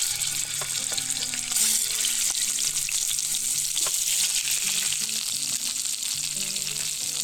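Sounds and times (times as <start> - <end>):
chicken drumsticks sizzling in hot frying oil: 0.0 - 7.2.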